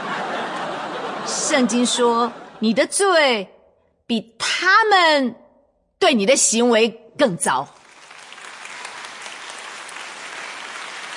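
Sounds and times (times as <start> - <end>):
laughter: 0.0 - 2.8
speech: 1.5 - 5.4, 6.0 - 7.8
clapping: 7.8 - 11.1.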